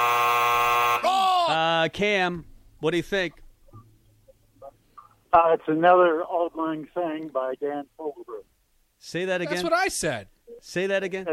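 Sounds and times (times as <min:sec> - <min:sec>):
quiz buzzer: 0:00.0 - 0:01.2
speech: 0:01.5 - 0:03.8, 0:05.3 - 0:11.3.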